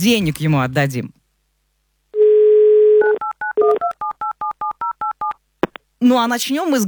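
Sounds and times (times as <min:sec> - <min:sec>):
speech: 0:00.0 - 0:01.2, 0:06.0 - 0:06.8
telephone dial tone: 0:02.2 - 0:05.4.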